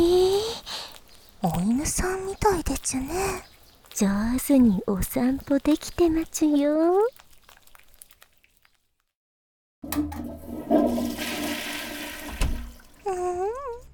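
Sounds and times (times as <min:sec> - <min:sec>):
speech: 0:01.4 - 0:07.2
toilet flushing: 0:09.8 - 0:13.0.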